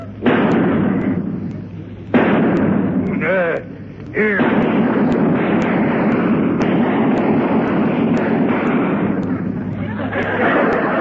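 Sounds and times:
gunshot sound effect in a comedy sketch: 0:00.2 - 0:01.5, 0:02.1 - 0:03.6, 0:04.2 - 0:09.6
speech: 0:04.2 - 0:04.4
laughter: 0:09.6 - 0:11.0.

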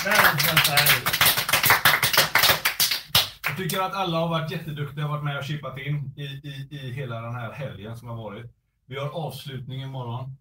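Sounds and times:
speech: 0:00.0 - 0:01.0, 0:03.6 - 0:10.4
small round of applause: 0:00.0 - 0:03.8.

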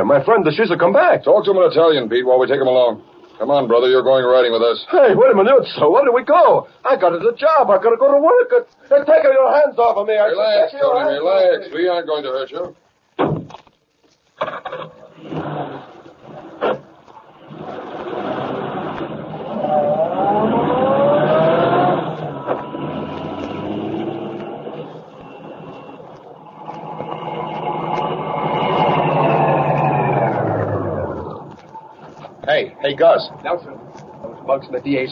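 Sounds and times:
speech: 0:00.0 - 0:13.4, 0:32.9 - 0:33.7, 0:34.5 - 0:35.1
sharp knocks and thumps: 0:13.2 - 0:13.8
car engine running as car pulls up: 0:17.4 - 0:31.9.

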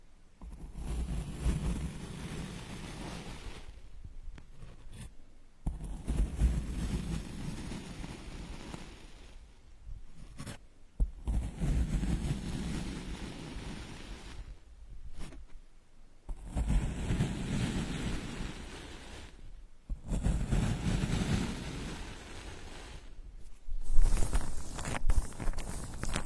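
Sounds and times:
straws digging and scraping against a microphone ear: 0:00.4 - 0:09.4, 0:10.1 - 0:15.6, 0:16.3 - 0:26.2.

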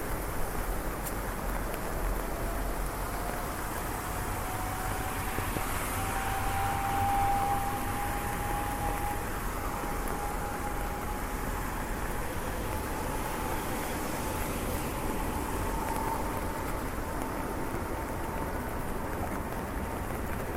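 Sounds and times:
rain hissing on streets in Switzerland: 0:00.0 - 0:20.5
wet traffic on streets in Switzerland: 0:00.0 - 0:20.5.

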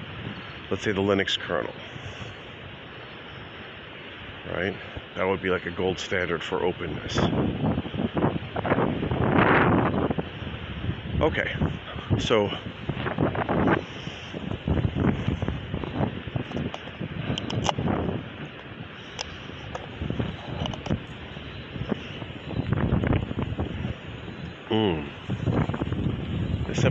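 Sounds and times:
wind buffeting the microphone outdoors near the beach at Virginia Beach: 0:00.0 - 0:02.9, 0:04.2 - 0:26.8
speech: 0:00.7 - 0:02.2, 0:04.4 - 0:07.7, 0:11.2 - 0:12.8.

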